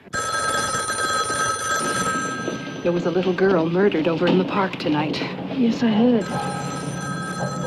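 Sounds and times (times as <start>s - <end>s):
telephone bell ringing in a house: 0.1s - 3.6s, 6.2s - 7.6s
speech: 2.8s - 6.7s.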